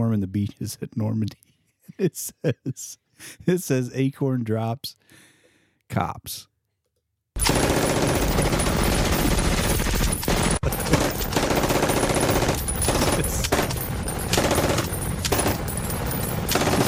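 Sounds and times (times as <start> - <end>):
speech: 0.1 - 5.3, 5.9 - 6.5, 7.4 - 8.5, 13.2 - 13.6
laughter: 1.9 - 3.6
machine gun fire: 7.4 - 16.8.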